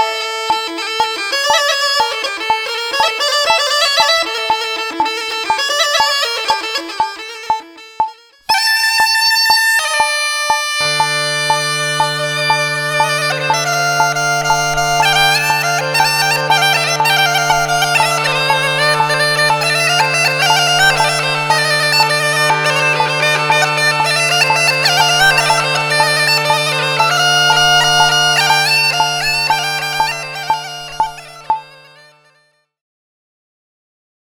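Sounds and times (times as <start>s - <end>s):
Balkan bagpipe: 0.0s - 32.5s.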